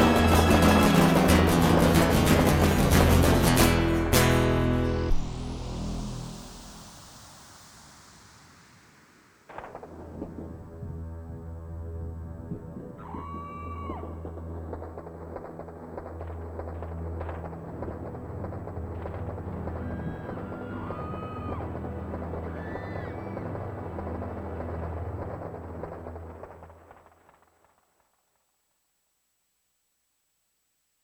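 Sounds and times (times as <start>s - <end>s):
blues interlude: 0.0s - 6.3s, 9.5s - 27.1s.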